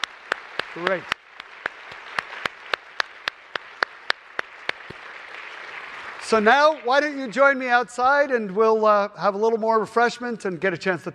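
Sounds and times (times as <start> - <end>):
softer crowd clapping: 0.0 - 8.0
speech: 0.7 - 1.2, 6.3 - 11.1.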